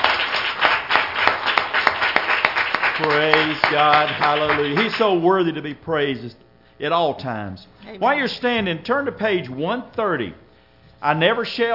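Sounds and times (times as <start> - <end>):
crowd clapping hands in praise: 0.0 - 5.2
speech: 3.0 - 10.4, 11.0 - 11.7.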